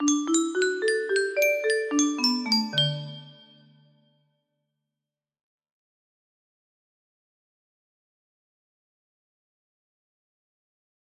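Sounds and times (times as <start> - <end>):
music box playing a christmas song: 0.0 - 4.0.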